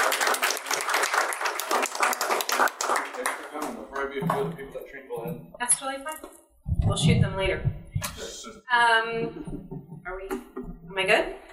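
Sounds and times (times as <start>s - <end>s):
small group applauding: 0.0s - 4.6s
speech: 4.2s - 7.8s, 8.7s - 10.4s, 11.0s - 11.4s.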